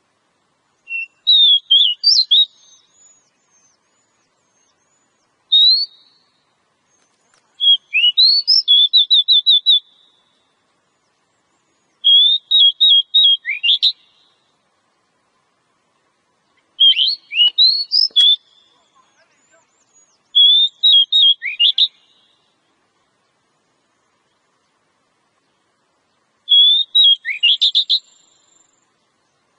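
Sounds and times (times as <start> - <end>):
Oriental magpie-robin whistling phrases: 0.9 - 3.8, 4.9 - 6.2, 7.6 - 10.1, 12.0 - 14.2, 16.8 - 22.3, 26.5 - 28.4
faint clicks: 6.9 - 7.6.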